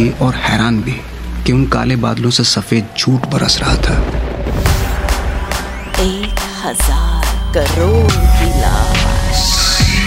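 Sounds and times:
speech: 0.0s - 4.7s, 6.0s - 9.5s
loud lightning crack: 3.2s - 6.3s.

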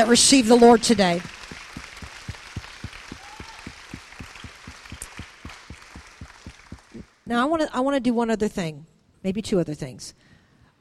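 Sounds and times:
speech: 0.0s - 1.4s, 7.3s - 10.3s
audience clapping hands: 0.6s - 7.2s.

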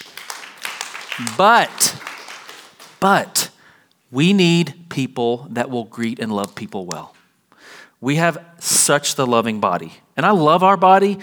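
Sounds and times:
audience clapping: 0.0s - 3.6s
speech: 1.2s - 2.0s, 3.0s - 3.5s, 4.1s - 7.2s, 8.0s - 11.2s.

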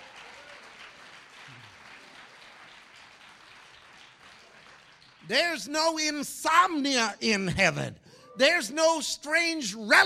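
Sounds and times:
crowd clapping: 0.0s - 6.0s
speech: 5.3s - 10.0s.

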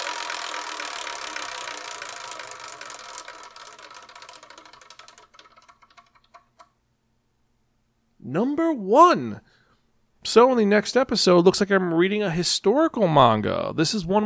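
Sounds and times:
spinning selection wheel ticking: 0.0s - 6.7s
speech: 8.3s - 9.5s, 10.3s - 14.2s.

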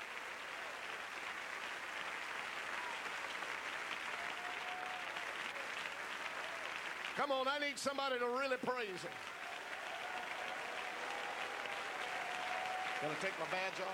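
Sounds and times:
audience applause: 0.0s - 13.9s
speech: 7.2s - 9.4s, 13.0s - 13.9s.

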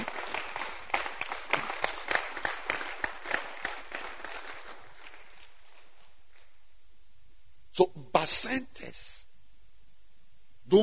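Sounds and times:
audience clapping: 0.0s - 6.6s
speech: 7.8s - 9.2s.

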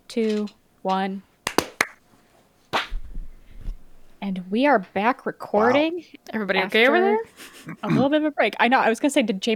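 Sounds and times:
speech: 0.1s - 1.3s, 4.3s - 9.5s
hand claps for recording sync: 1.4s - 2.0s.

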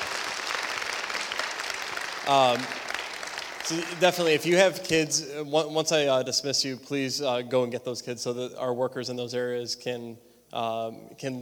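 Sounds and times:
audience applause: 0.0s - 4.7s
speech: 2.3s - 2.8s, 3.7s - 11.4s.

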